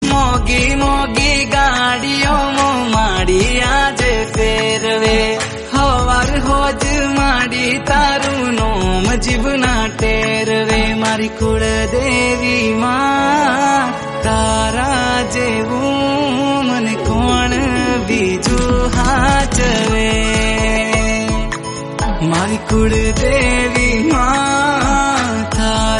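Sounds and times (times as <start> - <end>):
Gujarati song: 0.0 - 25.9.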